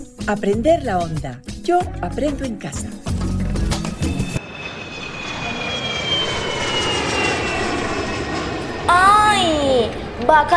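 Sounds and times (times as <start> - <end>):
speech: 0.3 - 3.2, 8.9 - 10.5
airplane engine drone: 4.3 - 10.5.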